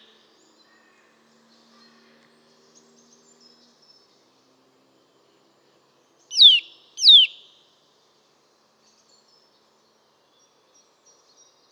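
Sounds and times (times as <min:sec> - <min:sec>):
Eurasian nuthatch Sitta europaea call: 0:06.3 - 0:07.4.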